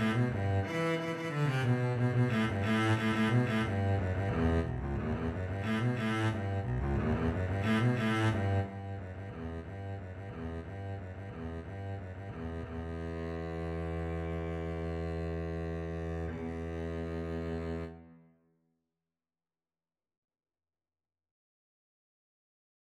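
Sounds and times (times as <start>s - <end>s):
double bass duet: 0.0s - 18.1s.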